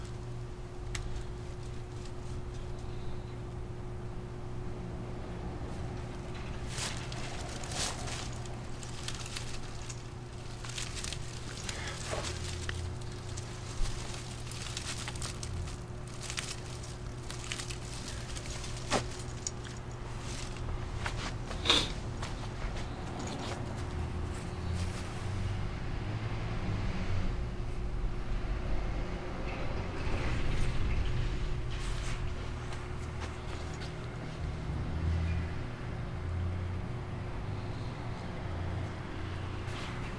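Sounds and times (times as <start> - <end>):
apple tree branches snapping and cracking while being cut down: 0.0 - 2.9, 5.8 - 21.6
steady low engine-like drone with a fixed hum: 0.0 - 40.1.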